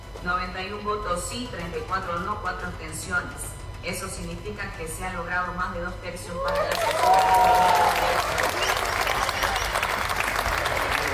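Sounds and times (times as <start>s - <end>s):
speech: 0.2s - 8.9s
applause in a legislative chamber: 6.5s - 11.1s.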